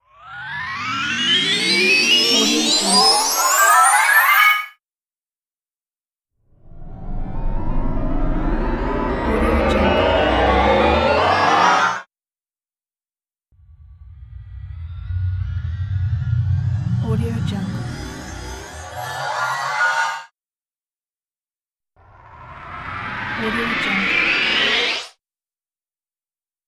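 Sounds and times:
sci-fi thruster powering up: 0.1s - 4.5s, 6.6s - 12.1s, 13.6s - 20.2s, 22.2s - 25.1s.

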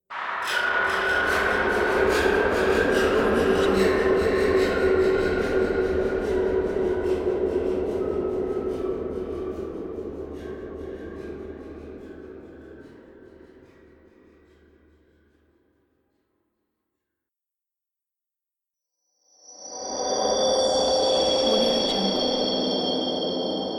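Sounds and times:
ominous ambience: 0.4s - 12.6s, 19.8s - 23.7s.

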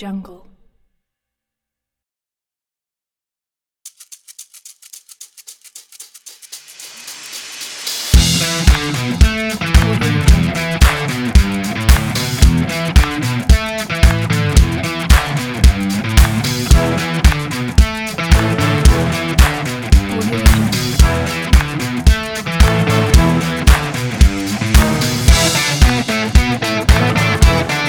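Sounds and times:
energetic upbeat indie rock: 8.2s - 27.8s.

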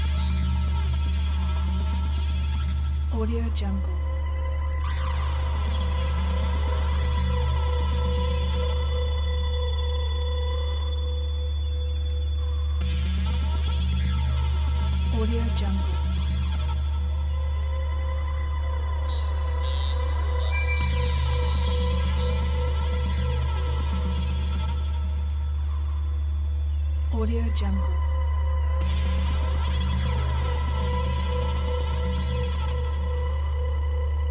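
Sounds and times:
dark scifi industrial horror background music: 0.0s - 34.2s.

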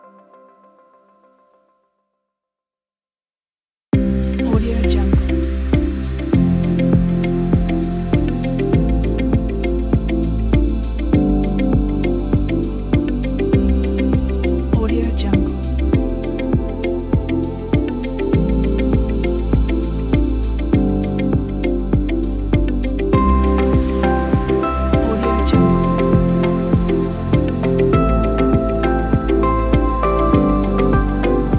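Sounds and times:
ambient corporate music: 4.0s - 31.5s.

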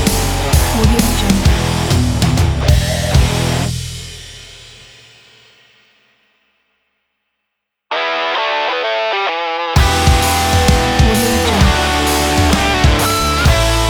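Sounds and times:
metal rock music: 0.0s - 4.5s, 7.9s - 13.8s.

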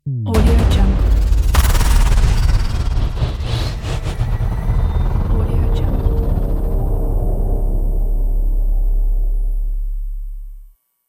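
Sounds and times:
transforming logo sound: 0.3s - 10.0s.

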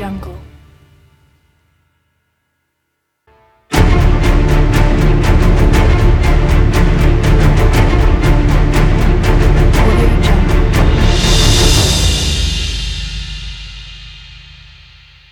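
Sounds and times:
epic music: 3.3s - 15.2s.

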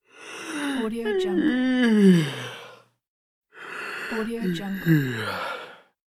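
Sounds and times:
person yawning: 0.5s - 2.8s, 4.7s - 5.8s.

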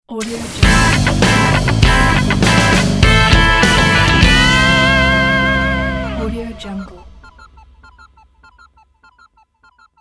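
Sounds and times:
rock music logo: 0.6s - 6.2s.

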